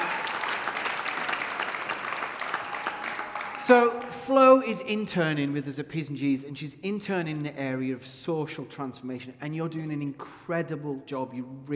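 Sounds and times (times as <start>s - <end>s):
crowd clapping: 0.0s - 4.8s
speech: 3.7s - 11.7s.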